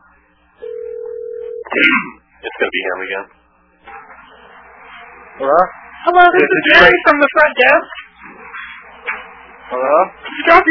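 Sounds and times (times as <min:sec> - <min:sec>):
faint murmur: 0:00.0 - 0:10.6
telephone beep: 0:00.6 - 0:01.7
speech: 0:01.7 - 0:03.4, 0:05.4 - 0:08.4, 0:09.7 - 0:10.6.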